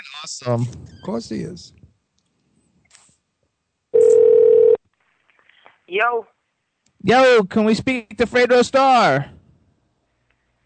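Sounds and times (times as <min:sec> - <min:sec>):
speech: 0:00.0 - 0:01.8, 0:05.9 - 0:06.4, 0:07.0 - 0:09.4
telephone dial tone: 0:04.0 - 0:04.8.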